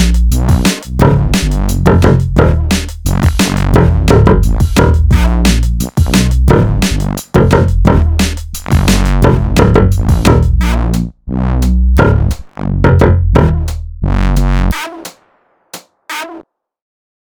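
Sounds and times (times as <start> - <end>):
cool jungle music: 0.0 - 13.8.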